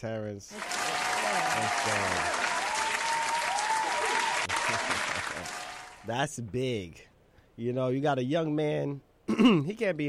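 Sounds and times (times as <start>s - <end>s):
speech: 0.0s - 2.5s, 4.7s - 10.0s
audience applause: 0.5s - 6.0s.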